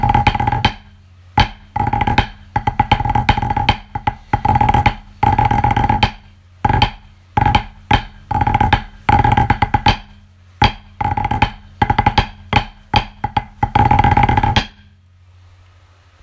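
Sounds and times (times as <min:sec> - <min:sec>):
snare drum: 0:00.0 - 0:14.9.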